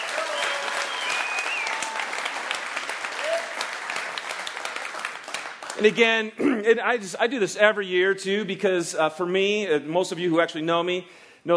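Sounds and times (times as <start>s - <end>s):
applause for mothers at a Mother's Day gathering: 0.0s - 6.2s
whistles: 0.3s - 1.9s
speech: 5.8s - 11.5s.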